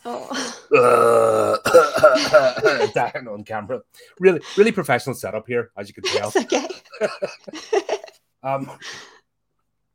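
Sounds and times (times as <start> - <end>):
speech: 0.0 - 1.3, 2.2 - 9.1
loud throaty cough: 0.7 - 3.0.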